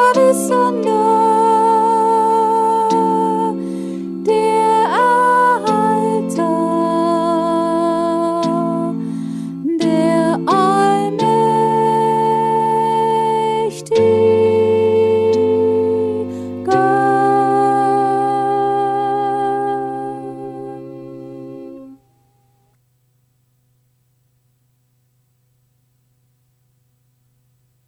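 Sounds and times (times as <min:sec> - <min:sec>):
alto singing: 0:00.0 - 0:09.0, 0:09.6 - 0:20.9
choral music: 0:00.0 - 0:22.5.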